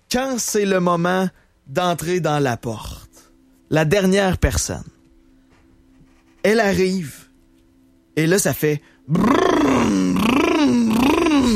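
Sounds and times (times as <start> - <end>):
speech: 0.1 - 3.0, 3.7 - 4.9, 6.4 - 7.2, 8.2 - 10.4
voice imitating Lamborghini Urus revving engine rumble: 9.1 - 11.5.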